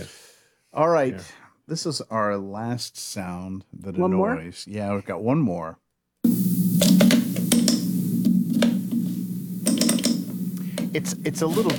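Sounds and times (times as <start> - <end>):
speech: 0.0 - 6.6, 10.9 - 11.7
computer mouse clicking: 6.3 - 11.7
low hum: 6.3 - 11.7.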